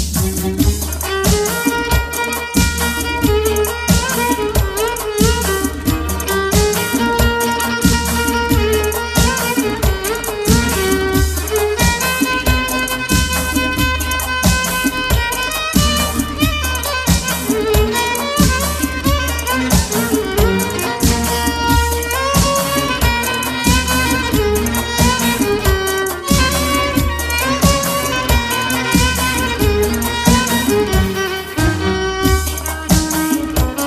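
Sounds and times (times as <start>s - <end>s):
violin: 0.2s - 33.8s.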